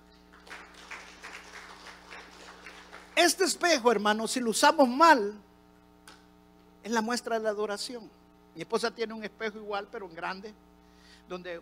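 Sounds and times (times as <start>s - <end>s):
crowd applauding: 0.0s - 3.7s
constant low electrical hum: 0.0s - 11.5s
speech: 3.2s - 5.5s, 6.9s - 10.7s, 11.3s - 11.5s.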